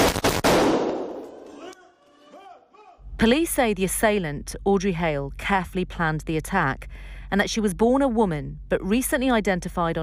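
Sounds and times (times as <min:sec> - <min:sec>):
police officer firing gunshots upstairs in school attack footage: 0:00.0 - 0:01.5
speech: 0:03.2 - 0:10.0.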